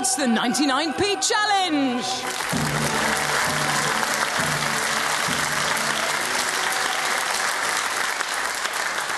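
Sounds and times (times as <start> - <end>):
speech: 0.2 - 2.9
studio audience clapping: 2.0 - 9.1.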